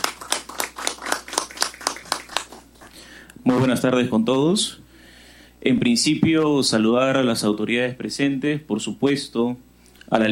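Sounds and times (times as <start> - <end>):
audience clapping: 0.0 - 2.9
speech: 3.4 - 4.8, 5.6 - 10.3.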